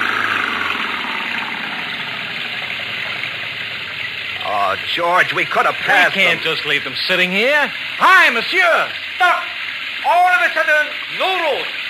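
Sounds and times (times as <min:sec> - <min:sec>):
car engine revving, stuck in mud: 0:00.0 - 0:06.5
speech: 0:04.7 - 0:09.4, 0:10.1 - 0:11.8.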